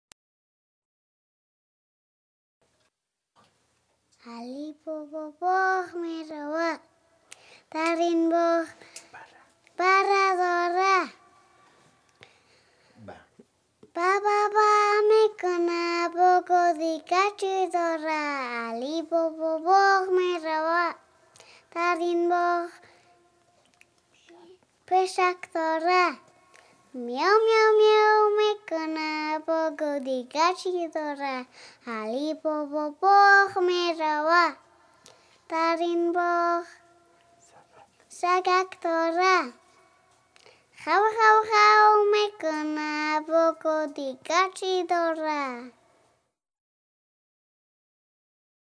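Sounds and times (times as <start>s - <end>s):
three-year-old child singing: 4.2s - 7.0s, 7.7s - 11.5s, 13.8s - 23.4s, 24.2s - 34.7s, 35.5s - 39.8s, 40.8s - 45.8s.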